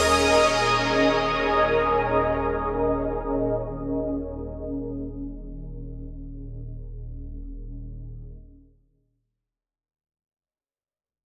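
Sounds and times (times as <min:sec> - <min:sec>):
poly synth on a Dexibell Vivo S2: 0:00.0 - 0:08.6.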